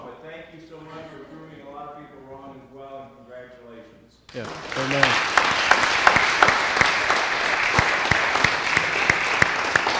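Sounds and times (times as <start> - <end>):
speech: 0.5 - 5.6
audience applause honoring a couple: 4.3 - 9.9.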